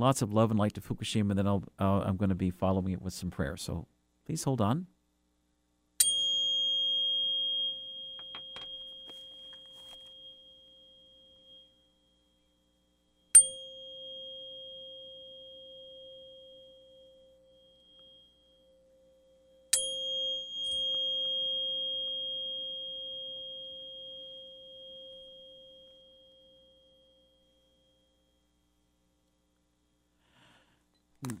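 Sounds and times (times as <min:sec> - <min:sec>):
speech: 0:00.0 - 0:04.9
528 hertz tuning fork struck and ringing: 0:05.9 - 0:30.2.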